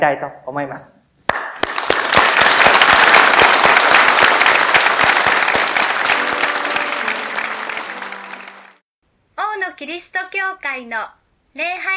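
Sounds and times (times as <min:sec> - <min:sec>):
speech: 0:00.0 - 0:01.0, 0:09.8 - 0:11.9
audience applauding loudly: 0:01.3 - 0:08.8.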